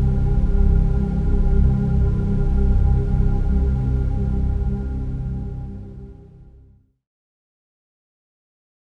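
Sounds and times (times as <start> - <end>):
drone in C major: 0.0 - 6.4.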